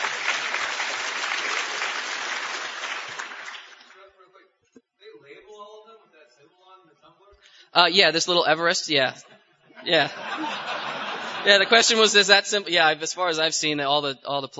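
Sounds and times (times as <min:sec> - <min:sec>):
audience applause: 0:00.0 - 0:04.0
speech: 0:07.8 - 0:10.8, 0:11.4 - 0:14.5
laughter: 0:09.2 - 0:12.6.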